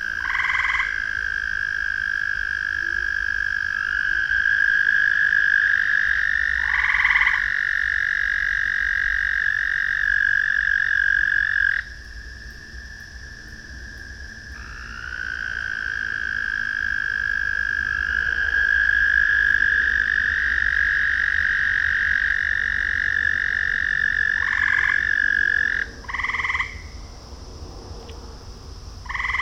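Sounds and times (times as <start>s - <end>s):
several frogs calling in a ravine at night: 0.0s - 29.4s.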